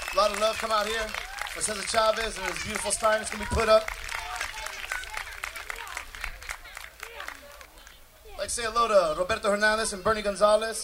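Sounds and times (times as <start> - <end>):
audience applause: 0.0 - 8.0
speech: 0.2 - 4.0, 8.5 - 10.8.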